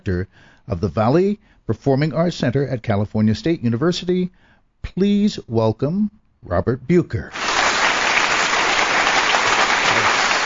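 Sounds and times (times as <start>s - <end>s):
speech: 0.0s - 7.4s
audience applause: 7.3s - 10.4s.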